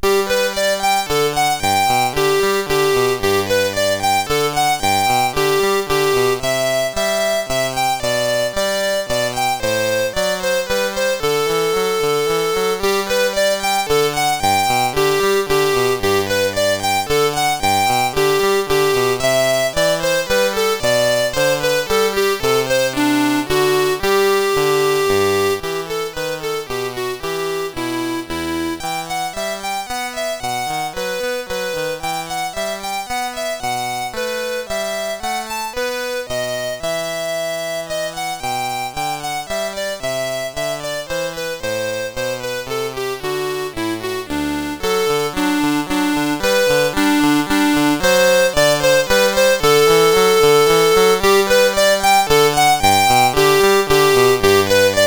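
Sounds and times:
minuet on CSG8580R5 sound chip: 0.0 - 55.0.

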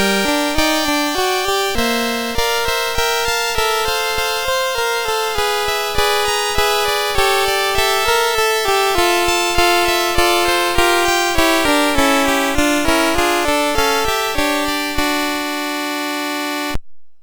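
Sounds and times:
sarabande on MOS6581R4 sound chip: 0.0 - 16.8.

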